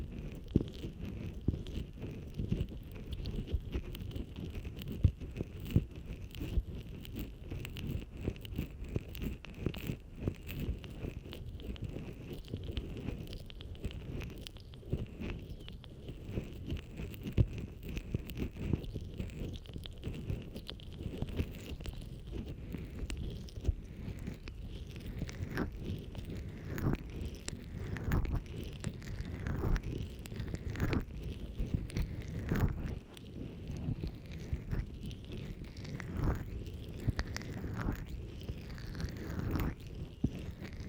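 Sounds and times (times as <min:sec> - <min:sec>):
rubbing and stroking against a microphone: 0:00.0 - 0:40.8.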